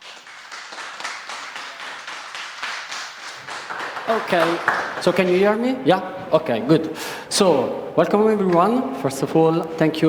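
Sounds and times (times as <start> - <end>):
audience applause: 0.0 - 5.6
speech: 4.1 - 10.0.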